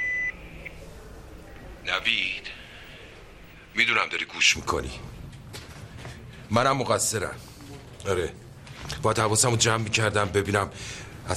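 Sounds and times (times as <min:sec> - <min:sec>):
answering machine beep: 0:00.0 - 0:00.8
low hum: 0:00.0 - 0:11.3
speech: 0:01.9 - 0:02.6, 0:03.8 - 0:05.1, 0:06.5 - 0:11.3.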